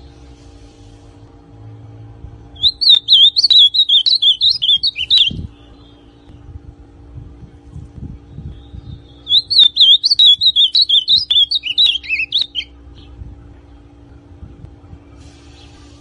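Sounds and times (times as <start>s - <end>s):
soft low rumble: 0.0s - 2.8s, 4.5s - 9.6s, 10.4s - 16.0s
ultramarine grosbeak song: 2.6s - 6.4s, 8.3s - 13.2s.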